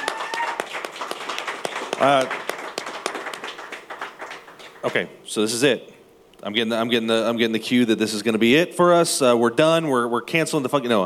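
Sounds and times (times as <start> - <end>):
person whooping: 0.0 - 0.7
few people clapping: 0.0 - 5.1
speech: 2.0 - 2.4, 4.8 - 11.0.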